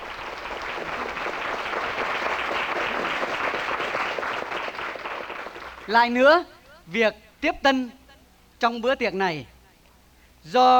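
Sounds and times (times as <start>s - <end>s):
audience applause: 0.0s - 6.1s
speech: 5.9s - 8.0s, 8.6s - 9.5s, 10.4s - 10.7s.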